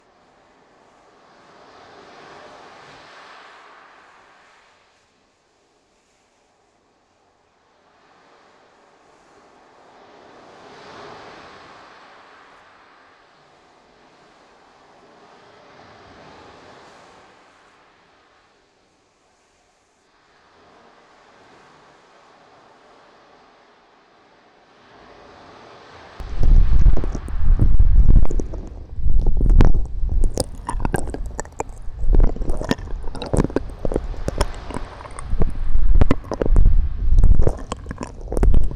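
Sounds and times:
licking deep in the right ear: 0:26.2 - 0:38.7.

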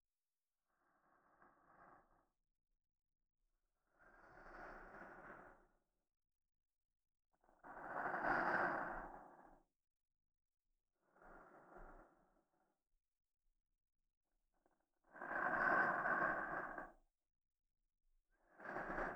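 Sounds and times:
soft sleep-inducing voice in right channel: 0:00.6 - 0:02.4, 0:03.8 - 0:05.8, 0:07.4 - 0:09.7, 0:11.0 - 0:12.6, 0:14.6 - 0:17.1, 0:18.4 - 0:19.1.

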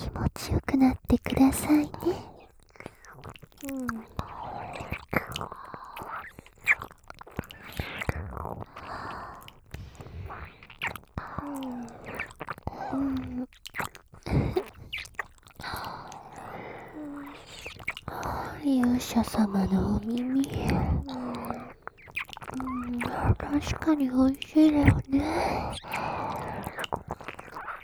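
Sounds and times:
person whispering: 0:00.0 - 0:02.3, 0:18.1 - 0:21.8, 0:22.5 - 0:26.7
wet ear-licking mouth sounds for ASMR: 0:00.0 - 0:27.8
speech: 0:00.4 - 0:02.3.

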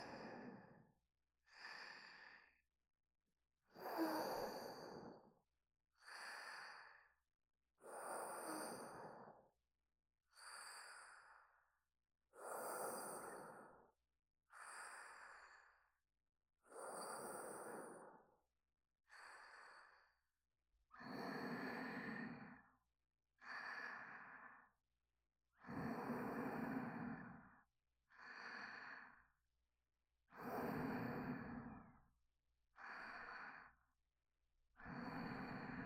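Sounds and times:
person breathing in sleep: 0:00.0 - 0:00.9, 0:01.5 - 0:02.7, 0:03.7 - 0:05.4, 0:06.0 - 0:07.2, 0:07.8 - 0:09.5, 0:10.3 - 0:11.7, 0:12.3 - 0:16.0, 0:16.6 - 0:18.4, 0:19.0 - 0:20.3, 0:20.9 - 0:22.8, 0:23.4 - 0:24.8, 0:25.6 - 0:29.4, 0:30.3 - 0:32.1, 0:32.7 - 0:34.0, 0:34.8 - 0:35.8.

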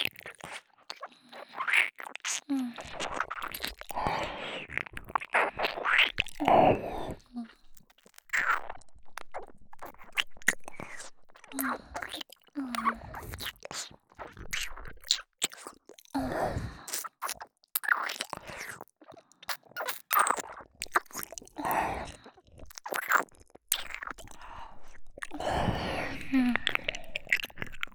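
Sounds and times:
ear licking: 0:00.2 - 0:18.8, 0:19.4 - 0:27.9
succubus older-sister woman's erotic voice: 0:02.3 - 0:04.8, 0:06.2 - 0:07.8, 0:10.6 - 0:13.4, 0:16.2 - 0:17.0, 0:21.5 - 0:22.4, 0:23.8 - 0:27.9.

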